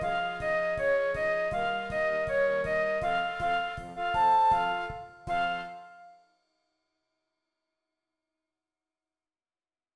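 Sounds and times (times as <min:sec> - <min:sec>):
flute: 0:00.0 - 0:06.2.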